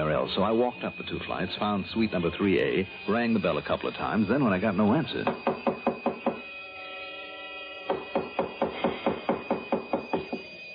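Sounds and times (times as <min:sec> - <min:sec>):
speech: 0:00.2 - 0:05.7
pounding on a door: 0:05.2 - 0:06.4, 0:07.9 - 0:10.5.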